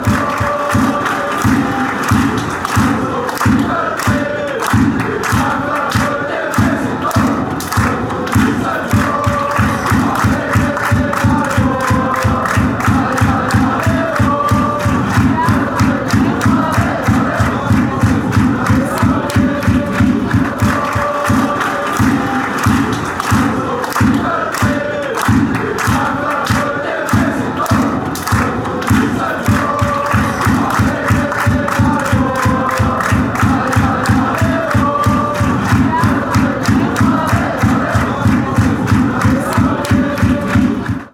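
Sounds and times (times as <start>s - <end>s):
crowd chanting: 0.0s - 41.1s.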